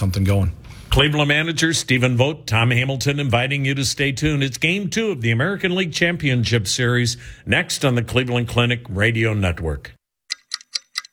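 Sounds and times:
speech: 0.0s - 10.0s
clock ticking: 10.3s - 11.1s.

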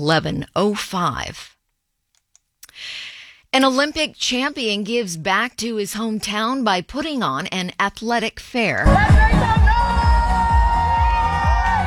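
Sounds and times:
speech: 0.0s - 1.6s, 2.8s - 9.8s
crowd cheering in a cheer tunnel: 8.9s - 11.8s
rhythmic clapping or stomping: 8.9s - 11.8s.

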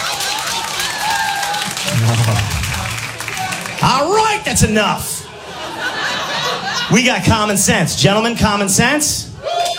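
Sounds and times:
audience applause: 0.0s - 3.8s
speech: 3.9s - 5.2s, 6.9s - 9.6s.

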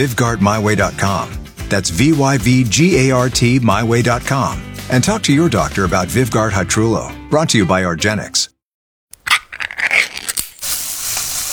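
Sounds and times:
speech: 0.0s - 8.5s
Spam sizzling in a pan: 9.5s - 11.5s.

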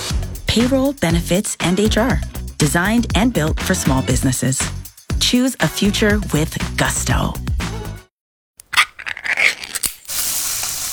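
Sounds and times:
speech: 0.5s - 7.5s
Spam sizzling in a pan: 9.8s - 10.9s.

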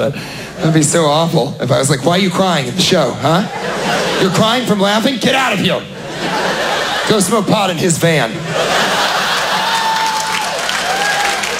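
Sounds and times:
speech: 0.0s - 8.7s
laughter: 3.2s - 11.1s
audience applause and cheering: 8.6s - 11.5s.

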